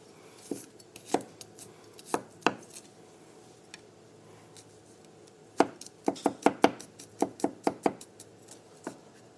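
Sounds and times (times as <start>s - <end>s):
knife chopping garlic: 0.5s - 2.8s, 5.6s - 9.3s.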